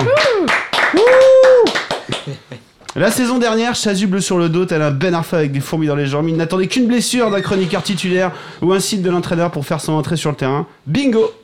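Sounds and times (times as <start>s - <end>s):
audience applause: 0.0s - 2.4s
speech: 3.0s - 11.4s.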